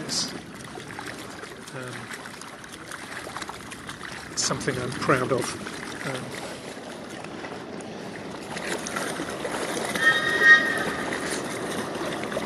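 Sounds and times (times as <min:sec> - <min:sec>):
river water lapping against the bank: 0:00.0 - 0:12.4
speech: 0:00.1 - 0:00.5, 0:01.7 - 0:02.2, 0:04.4 - 0:06.5
faint high tone: 0:09.9 - 0:11.8.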